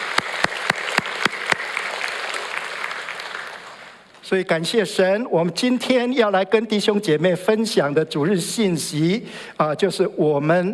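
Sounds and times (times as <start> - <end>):
audience applauding: 0.0 - 4.2
speech: 4.3 - 10.7.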